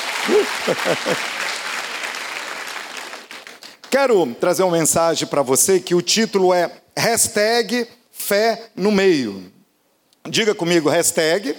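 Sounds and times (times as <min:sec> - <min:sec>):
audience applause: 0:00.0 - 0:04.0
laughter: 0:00.2 - 0:01.4
speech: 0:00.2 - 0:01.5, 0:03.9 - 0:09.6, 0:10.2 - 0:11.5.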